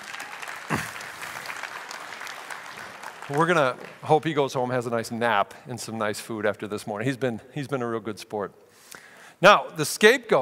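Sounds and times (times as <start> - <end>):
audience applause: 0.0 - 4.5
speech: 3.3 - 8.6, 9.4 - 10.4.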